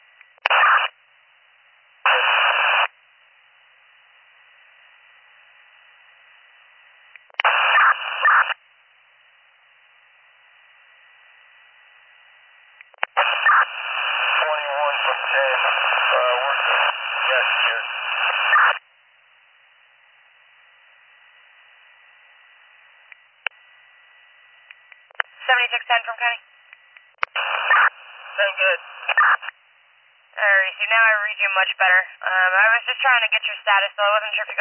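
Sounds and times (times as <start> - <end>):
crackly radio transmission static: 0.4 - 1.0, 2.1 - 2.9, 7.3 - 8.6, 12.9 - 18.8, 25.0 - 26.4, 27.2 - 29.6, 30.4 - 34.5
garbled unreadable voice in radio noise: 13.2 - 18.8, 25.4 - 26.4, 27.4 - 29.5, 30.4 - 34.5
speech: 25.8 - 26.6, 28.4 - 29.0, 30.8 - 34.5.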